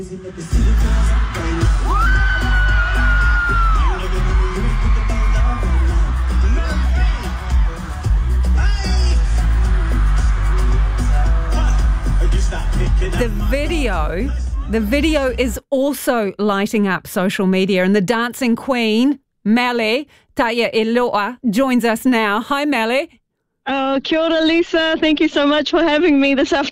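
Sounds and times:
speech: 0.0 - 2.5, 13.0 - 26.7
concert crowd screaming and cheering: 0.0 - 15.2
steady booming musical beat: 0.0 - 15.5.

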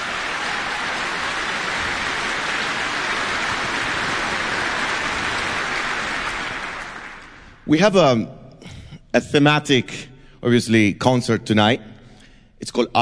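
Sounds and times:
large audience applauding an orchestra: 0.0 - 7.6
speech: 7.7 - 8.4, 9.1 - 11.9, 12.6 - 13.0.

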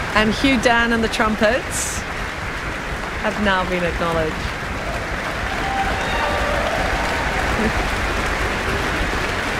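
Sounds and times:
speech: 0.1 - 2.0, 3.2 - 4.5
audience applause: 4.6 - 9.5.

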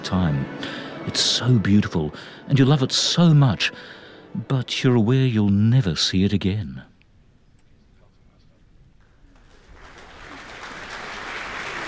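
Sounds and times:
speech: 0.1 - 6.9
concert hall audience applause: 9.2 - 11.8.

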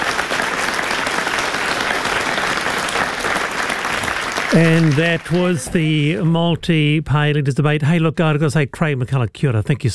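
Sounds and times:
audience applause: 0.0 - 6.0
speech: 4.5 - 9.9.

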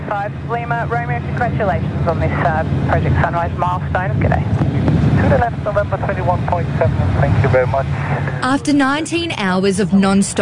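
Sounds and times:
Qantas Airbus jet engines roaring touching down at Melbourne Airport: 0.0 - 10.4
speech: 0.1 - 10.4.

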